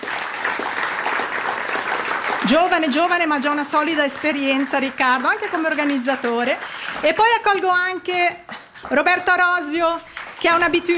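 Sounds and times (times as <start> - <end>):
evening music festival audience in Montebello applauding a violinist: 0.0 - 7.0
speech: 2.5 - 10.9.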